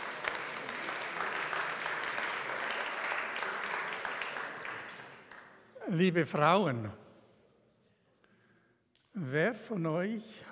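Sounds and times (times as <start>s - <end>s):
audience applause: 0.0s - 6.0s
speech: 5.9s - 7.0s, 9.3s - 10.5s.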